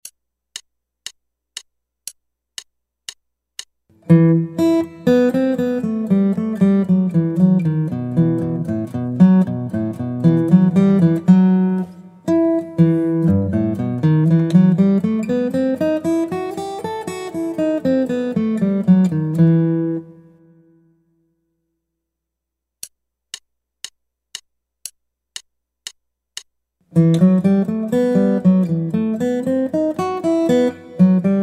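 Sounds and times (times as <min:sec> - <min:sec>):
guitar: 0:03.9 - 0:20.9, 0:26.9 - 0:31.4.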